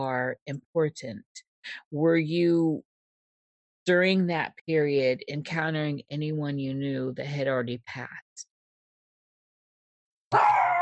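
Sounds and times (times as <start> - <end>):
speech: 0.0 - 2.9, 3.9 - 8.5
dogs whining and howling: 10.3 - 10.8.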